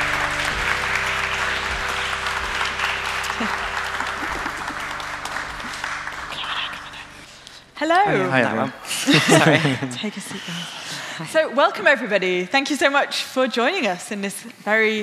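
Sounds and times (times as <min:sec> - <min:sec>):
laughter: 0:00.0 - 0:07.0, 0:07.9 - 0:11.6
audience applause at a live event: 0:00.0 - 0:07.5
speech: 0:03.4 - 0:03.6, 0:07.9 - 0:15.0.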